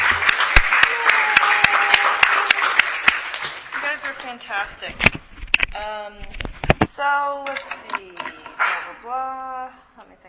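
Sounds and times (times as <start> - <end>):
audience applause: 0.0 - 4.2
speech: 4.4 - 5.2, 5.8 - 10.2.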